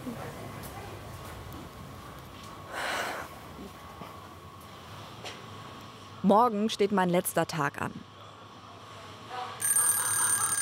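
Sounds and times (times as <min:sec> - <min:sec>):
speech: 0:06.2 - 0:08.1
alarm clock ringing: 0:09.6 - 0:10.6.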